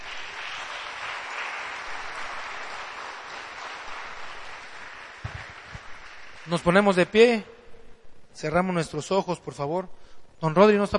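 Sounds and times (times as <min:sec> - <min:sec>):
crowd applause: 0:00.0 - 0:06.9
speech: 0:06.5 - 0:07.5, 0:08.4 - 0:10.9.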